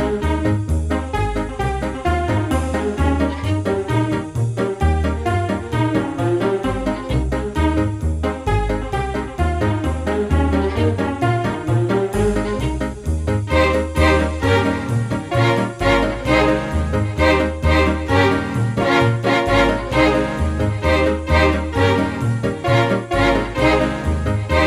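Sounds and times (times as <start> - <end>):
strings: 0.0 - 24.6.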